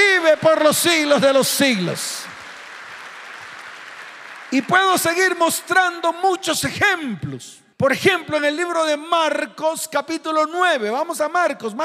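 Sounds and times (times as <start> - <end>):
crowd applause: 0.0 - 5.3
speech: 0.3 - 2.3, 4.5 - 11.8.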